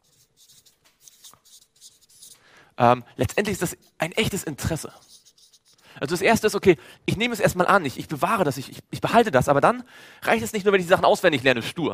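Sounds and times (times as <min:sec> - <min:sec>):
pen writing a German word by hand: 0:00.0 - 0:02.4, 0:03.2 - 0:06.5
speech: 0:02.8 - 0:05.1, 0:06.0 - 0:11.9.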